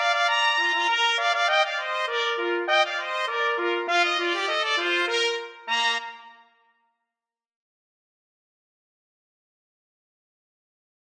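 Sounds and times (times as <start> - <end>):
trumpet duet: 0.0 - 6.5.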